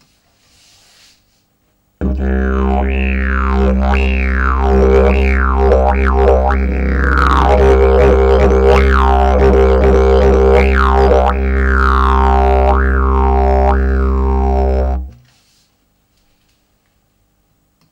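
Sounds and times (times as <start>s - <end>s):
wooden didgeridoo: 2.0s - 15.2s.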